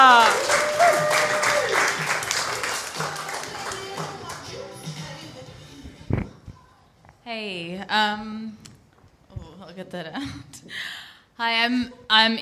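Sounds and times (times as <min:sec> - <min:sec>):
audience applause: 0:00.0 - 0:04.5
speech: 0:07.3 - 0:08.4, 0:09.8 - 0:12.3.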